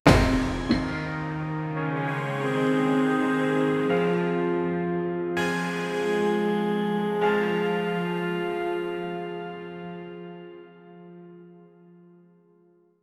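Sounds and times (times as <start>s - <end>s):
epic anime soundtrack music: 0.0s - 9.7s.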